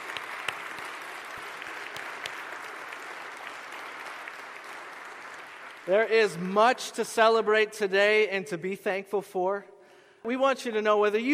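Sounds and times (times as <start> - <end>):
audience applause: 0.0 - 6.6
speech: 5.9 - 11.3.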